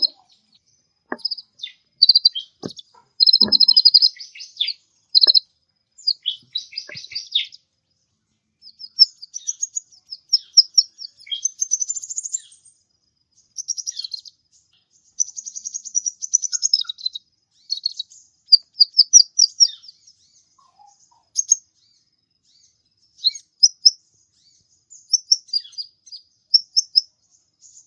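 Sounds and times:
mixed birds chirping and twittering: 0.0s - 27.8s.

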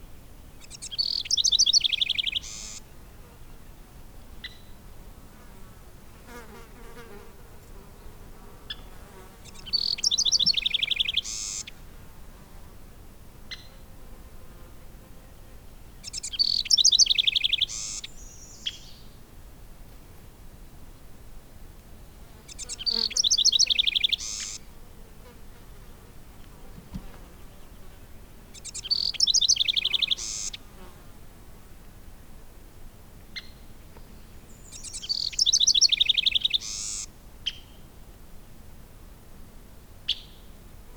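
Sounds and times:
bird song: 0.0s - 4.8s, 8.7s - 11.8s, 15.3s - 19.2s, 22.5s - 24.6s, 25.9s - 30.6s, 33.4s - 37.9s, 40.1s - 40.6s.

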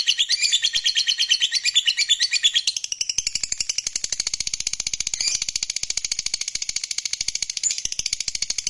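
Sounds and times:
fighter-type lovebird chirps: 0.0s - 4.1s, 5.1s - 5.5s, 6.7s - 8.2s.

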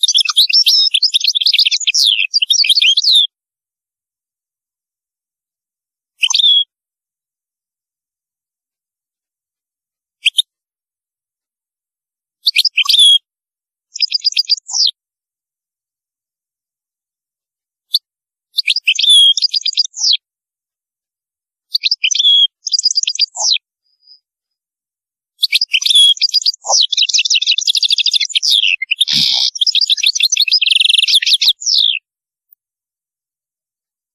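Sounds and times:
European goldfinch twittering song: 0.0s - 3.3s, 6.2s - 6.7s, 10.2s - 10.4s, 12.4s - 13.2s, 13.9s - 15.0s, 18.6s - 20.2s, 21.7s - 24.2s, 25.4s - 32.0s.

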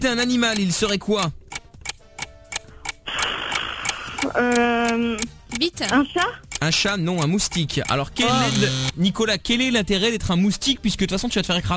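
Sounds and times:
speech: 0.0s - 1.4s, 4.4s - 11.7s
quiz countdown timer ticking: 0.0s - 9.2s.

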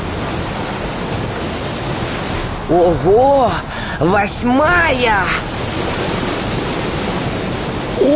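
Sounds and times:
ocean waves breaking on the shore: 0.0s - 8.1s
speech: 2.7s - 6.3s.

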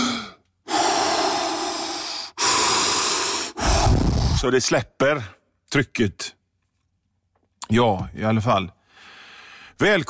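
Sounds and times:
deep breathing: 0.0s - 4.5s, 8.8s - 9.8s
speech: 4.4s - 6.4s, 7.7s - 8.8s, 9.8s - 10.0s.

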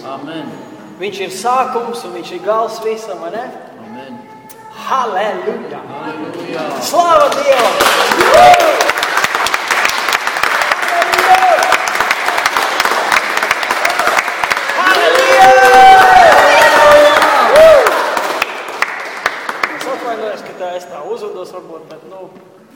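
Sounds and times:
speech: 0.1s - 8.8s
audience applause: 7.2s - 20.4s
audience cheering and shouting: 8.2s - 8.9s, 13.9s - 18.1s.

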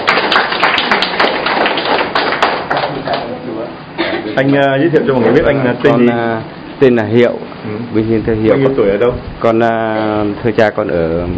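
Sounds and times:
audience applause: 0.0s - 3.3s
speech: 4.4s - 11.3s.

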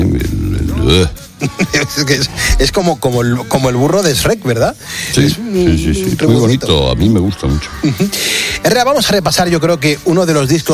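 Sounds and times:
guttural vocal grunt: 0.2s - 1.2s
speech: 0.9s - 10.7s.

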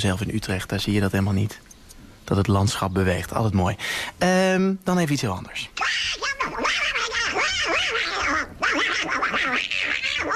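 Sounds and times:
speech: 0.0s - 1.7s, 2.3s - 5.8s
cartoon duck voice quacking and squawking: 5.8s - 10.3s.

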